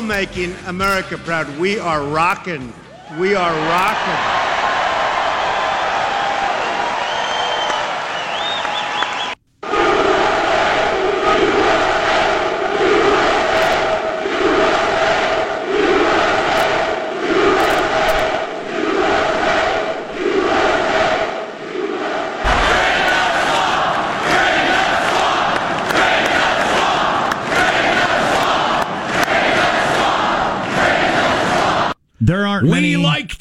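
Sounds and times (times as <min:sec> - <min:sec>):
speech: 0:00.2 - 0:04.4, 0:32.3 - 0:33.3
rally crowd cheering: 0:02.8 - 0:32.0
large rally crowd chanting rhythmically: 0:08.2 - 0:32.0.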